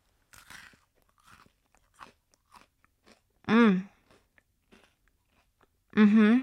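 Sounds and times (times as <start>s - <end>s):
crunching and chewing Maltesers chocolate malt balls: 0.0s - 5.8s
person humming with enjoyment: 3.5s - 3.9s, 6.0s - 6.4s.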